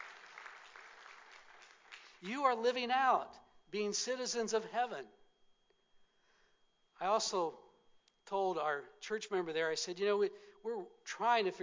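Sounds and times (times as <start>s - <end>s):
audience applause: 0.0s - 2.2s
speech: 2.2s - 5.2s, 7.0s - 7.6s, 8.3s - 11.6s.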